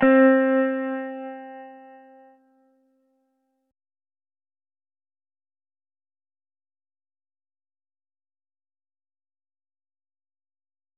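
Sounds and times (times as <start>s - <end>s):
guitar: 0.0s - 3.7s.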